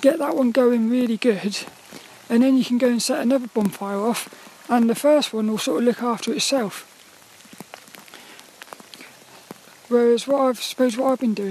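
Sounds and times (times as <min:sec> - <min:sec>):
speech: 0:00.0 - 0:06.9, 0:09.9 - 0:11.4
rain pattering in a graveyard: 0:00.0 - 0:11.4.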